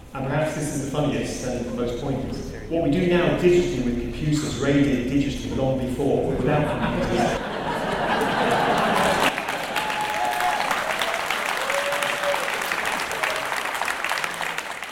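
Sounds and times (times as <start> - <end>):
speech: 0.1 - 7.5
laughter: 5.4 - 10.0
crowd applauding: 7.7 - 14.9
whistles and cheers: 9.6 - 13.9.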